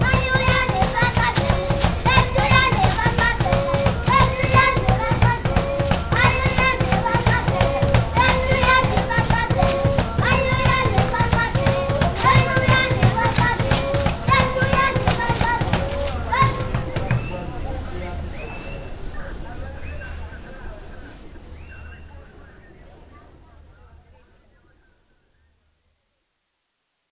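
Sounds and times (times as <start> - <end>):
African children: 0.0 - 19.4, 22.1 - 24.3.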